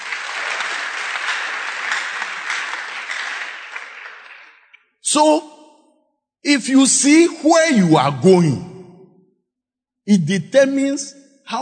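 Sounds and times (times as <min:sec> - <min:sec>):
audience clapping: 0:00.0 - 0:04.8
speech: 0:05.1 - 0:05.6, 0:06.4 - 0:08.7, 0:10.1 - 0:11.6.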